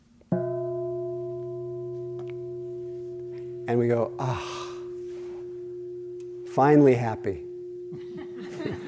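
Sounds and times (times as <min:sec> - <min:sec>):
single bell struck, ringing with layered overtones: 0:00.4 - 0:08.8
speech: 0:03.7 - 0:04.7, 0:06.6 - 0:08.8
laughter: 0:08.0 - 0:08.8.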